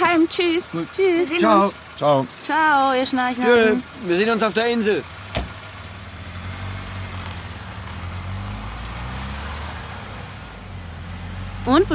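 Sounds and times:
taxi car driving: 0.0s - 11.9s
speech: 0.2s - 5.2s, 11.7s - 11.9s.

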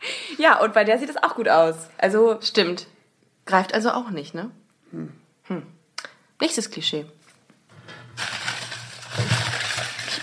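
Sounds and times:
speech: 0.3s - 5.8s, 6.4s - 7.2s
crunching in a box: 8.2s - 10.2s.

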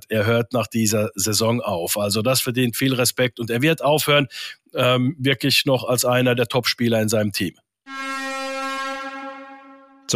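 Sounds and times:
speech: 0.1s - 8.1s
final siren horn: 7.9s - 10.1s.

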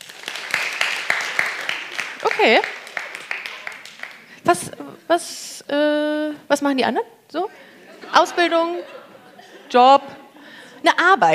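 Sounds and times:
lecture hall audience clapping: 0.0s - 4.6s
speech: 2.4s - 2.8s, 4.5s - 9.0s, 9.7s - 10.2s, 10.8s - 11.3s
laughter: 7.5s - 10.5s.

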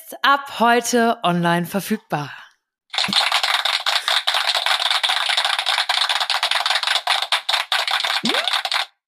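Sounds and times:
speech: 0.1s - 2.4s
canned applause effect from a gadget: 3.0s - 8.9s.

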